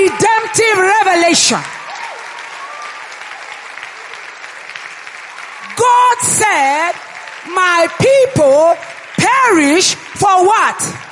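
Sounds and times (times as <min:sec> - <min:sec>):
audience clapping: 0:00.0 - 0:11.1
speech: 0:01.3 - 0:01.8, 0:06.5 - 0:11.1.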